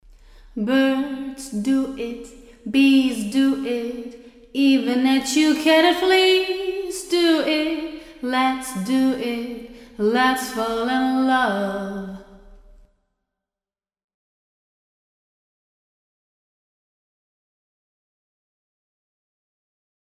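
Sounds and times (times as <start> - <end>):
voice in a large room: 0.0 - 13.0.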